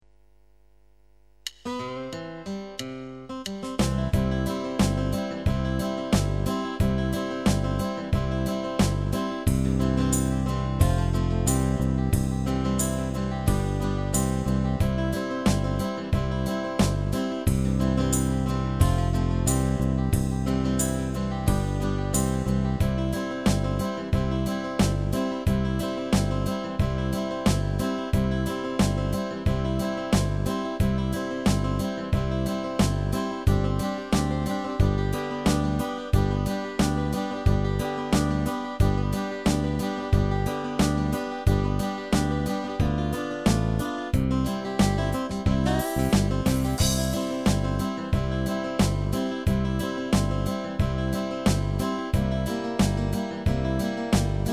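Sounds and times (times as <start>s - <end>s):
instrumental music: 1.4s - 54.5s.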